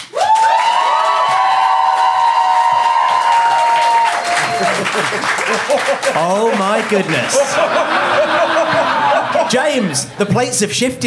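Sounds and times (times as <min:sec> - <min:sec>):
live studio audience applauding and cheering: 0:00.0 - 0:10.0
sustained high-pitched whoop: 0:00.1 - 0:05.0
laughter: 0:04.1 - 0:10.4
speech: 0:05.0 - 0:08.7, 0:09.5 - 0:11.0.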